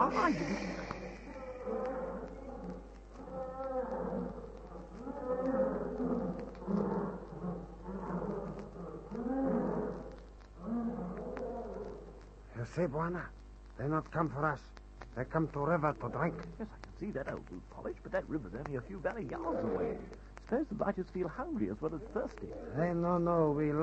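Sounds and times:
speech: 0.0s - 0.9s, 12.8s - 23.8s
lions roaring: 0.0s - 12.2s, 15.6s - 16.6s, 19.2s - 20.6s.

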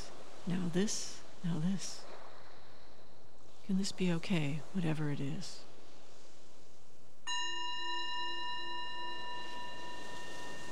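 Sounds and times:
speech: 0.4s - 2.1s, 3.7s - 5.7s
meditation bell: 7.3s - 10.7s.

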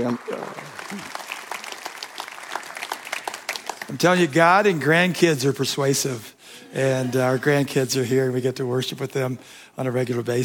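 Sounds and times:
speech: 0.0s - 1.2s, 3.9s - 10.4s
church audience clapping welcoming a guest speaker: 0.0s - 5.2s.

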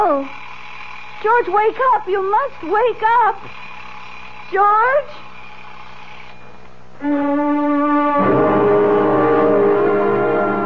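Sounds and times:
speech: 0.0s - 0.5s, 1.2s - 3.6s, 4.5s - 5.3s, 7.0s - 8.5s
alarm buzzing: 5.4s - 10.6s.

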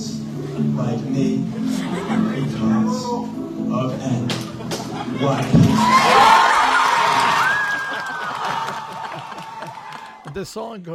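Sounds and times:
speech: 0.6s - 4.4s, 5.0s - 6.1s, 10.4s - 10.9s
laughter: 1.6s - 3.2s, 4.3s - 10.0s
audience cheering wildly after a song: 5.6s - 10.5s.

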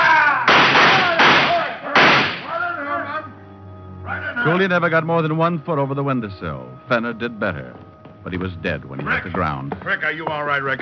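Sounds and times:
gunshots in a radio drama shootout at a window: 0.4s - 2.6s
speech: 4.5s - 10.8s.

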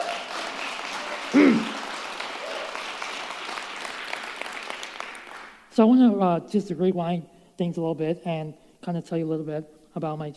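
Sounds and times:
audience applause: 0.0s - 5.6s
crowd cheering: 0.0s - 5.6s
speech: 1.3s - 1.7s, 5.8s - 10.3s.

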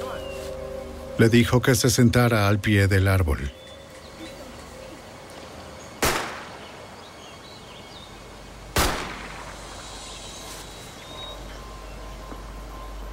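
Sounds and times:
speech: 1.2s - 3.6s
gunshots in a forest: 6.0s - 6.6s, 8.8s - 9.5s.

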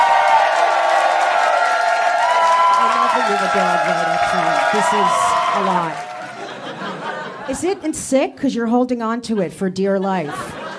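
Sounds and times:
scattered whoops: 0.0s - 6.3s
crowd cheering and clapping: 0.0s - 7.5s
laughter: 2.8s - 7.9s, 9.4s - 10.7s
speech: 3.6s - 6.1s, 7.5s - 10.5s.

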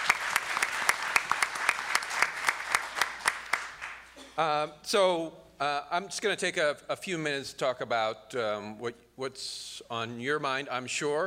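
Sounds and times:
round of applause: 0.0s - 4.2s
speech: 4.4s - 11.2s.

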